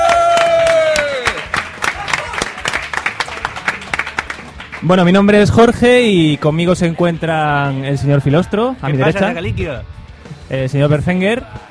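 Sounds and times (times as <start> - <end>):
audience applause: 0.0 - 5.0
speech: 4.8 - 11.6.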